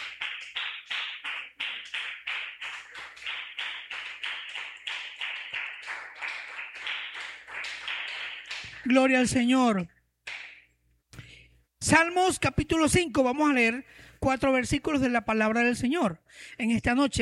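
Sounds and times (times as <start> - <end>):
audience applause: 0.0 - 8.9
speech: 8.8 - 10.0, 11.9 - 17.2.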